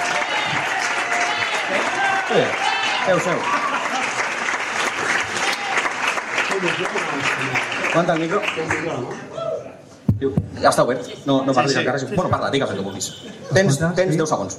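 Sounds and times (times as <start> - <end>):
audience applause: 0.0 - 9.1
speech: 2.3 - 3.7, 6.6 - 9.4, 10.2 - 14.5
laughter: 3.1 - 4.4, 11.0 - 14.2.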